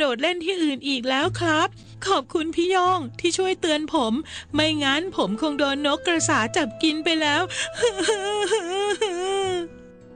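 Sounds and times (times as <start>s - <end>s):
speech: 0.0s - 9.8s
voice acting a fat frog character crying: 7.8s - 9.7s.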